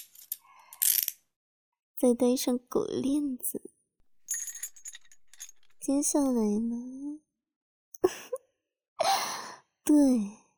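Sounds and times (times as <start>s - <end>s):
speech: 2.0s - 3.8s, 5.8s - 7.3s, 8.0s - 8.4s, 9.9s - 10.4s
handcuffs ratcheting shut: 4.3s - 5.9s.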